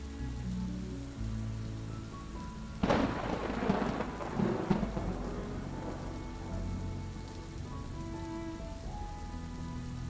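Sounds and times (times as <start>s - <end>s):
soft music with low held tones: 0.0s - 10.0s
steady rain: 0.0s - 10.0s
rumble of thunder: 0.5s - 10.0s.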